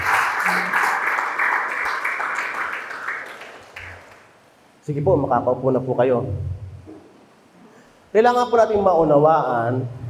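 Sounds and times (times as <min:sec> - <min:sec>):
church congregation clapping as an offering to God: 0:00.0 - 0:04.4
speech: 0:04.9 - 0:06.6, 0:08.1 - 0:10.0.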